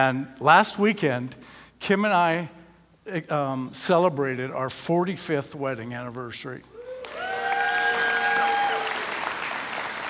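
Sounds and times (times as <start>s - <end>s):
speech: 0.0s - 7.2s
audience applause: 7.0s - 10.0s.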